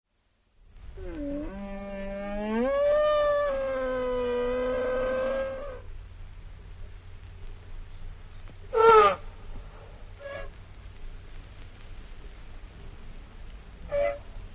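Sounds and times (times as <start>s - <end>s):
elephant trumpeting: 1.0s - 5.9s, 8.7s - 9.2s, 13.9s - 14.3s.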